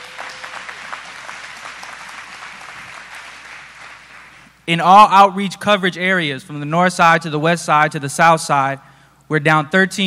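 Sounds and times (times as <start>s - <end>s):
crowd clapping: 0.0s - 4.6s
speech: 4.7s - 10.0s.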